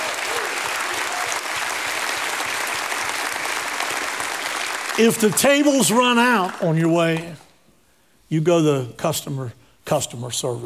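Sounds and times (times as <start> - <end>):
audience hand clapping: 0.0 - 7.4
speech: 5.0 - 7.4, 8.3 - 10.6.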